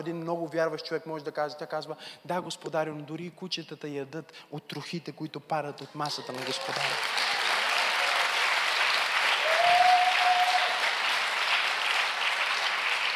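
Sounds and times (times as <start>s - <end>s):
speech: 0.0s - 7.2s
audience applause: 6.2s - 13.1s.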